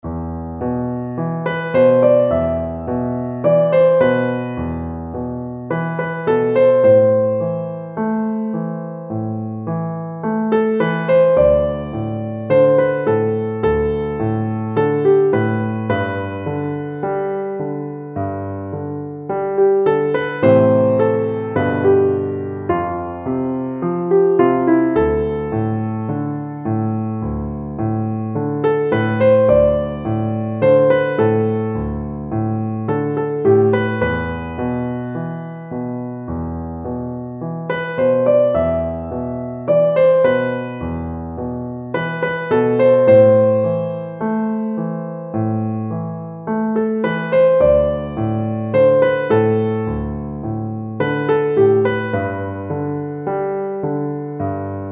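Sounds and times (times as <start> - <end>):
piano: 0.0 - 54.9.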